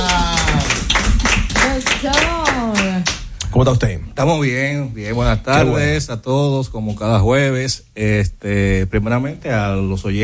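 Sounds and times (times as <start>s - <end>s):
applause: 0.0s - 3.2s
speech: 3.6s - 10.2s.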